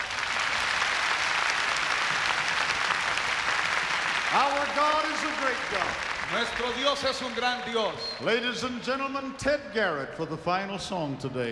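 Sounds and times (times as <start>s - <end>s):
audience applause: 0.0s - 8.2s
speech: 4.3s - 11.4s.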